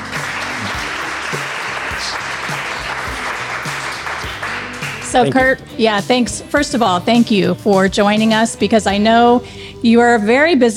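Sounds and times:
live audience applause at Little Nashville Cafe welcoming a guest: 0:00.0 - 0:05.4
speech: 0:05.2 - 0:10.7.

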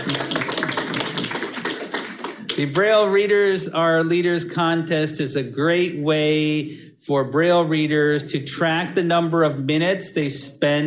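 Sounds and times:
audience applause: 0:00.0 - 0:02.7
speech: 0:02.6 - 0:10.8.

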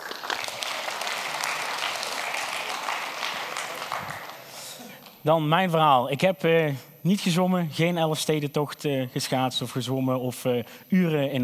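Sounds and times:
crowd applause: 0:00.0 - 0:05.2
speech: 0:05.2 - 0:11.4.

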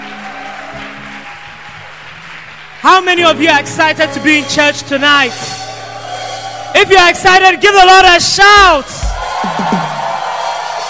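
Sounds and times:
audience clapping hands: 0:00.0 - 0:04.1, 0:09.0 - 0:10.8
speech: 0:02.8 - 0:05.6, 0:06.8 - 0:09.8.

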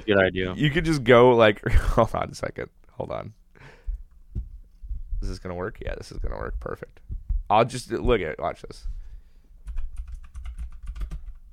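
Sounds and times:
speech: 0:00.0 - 0:03.8, 0:05.2 - 0:09.0
typing on a computer keyboard: 0:09.6 - 0:11.5.

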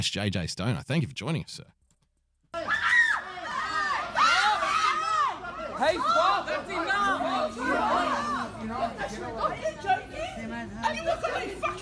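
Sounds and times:
speech: 0:00.0 - 0:01.8, 0:05.8 - 0:11.8
crowd shouting while fighting over toilet paper: 0:02.6 - 0:08.6.

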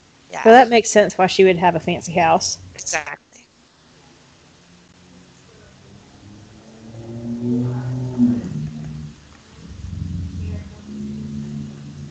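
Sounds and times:
speech: 0:00.3 - 0:03.2
motorcycle passing and revving engine: 0:05.0 - 0:12.0.

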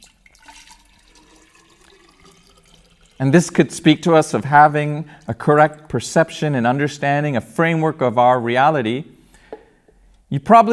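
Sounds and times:
water poured from a pitcher into a jar: 0:00.0 - 0:06.0
speech: 0:03.2 - 0:09.2, 0:10.3 - 0:10.7.

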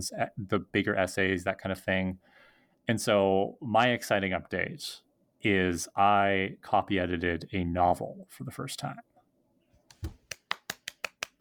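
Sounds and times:
speech: 0:00.0 - 0:09.1
hands clapping: 0:09.9 - 0:11.3.

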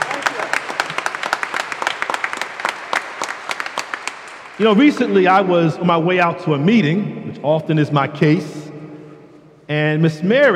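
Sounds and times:
audience applause: 0:00.0 - 0:05.2
speech: 0:04.6 - 0:08.6, 0:09.7 - 0:10.5.

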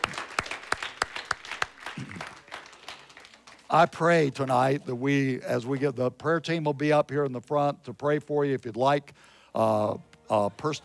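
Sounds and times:
audience clapping: 0:00.0 - 0:04.1
speech: 0:03.7 - 0:10.8.

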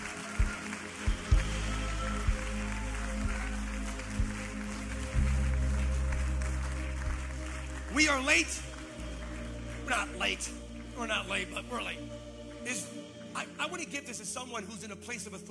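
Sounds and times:
crowd clapping: 0:00.0 - 0:13.4
speech: 0:08.0 - 0:08.7, 0:09.9 - 0:15.4.

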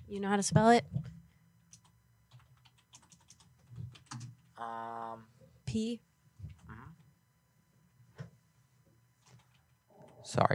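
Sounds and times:
speech: 0:00.1 - 0:01.1, 0:04.6 - 0:06.1, 0:10.2 - 0:10.5
typing a name on a computer keyboard: 0:01.7 - 0:04.5, 0:09.2 - 0:10.2.

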